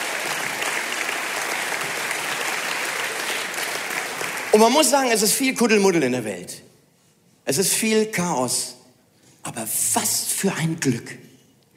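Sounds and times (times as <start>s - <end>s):
audience clapping: 0.0s - 5.2s
speech: 4.5s - 6.7s, 7.5s - 8.8s, 9.4s - 11.3s.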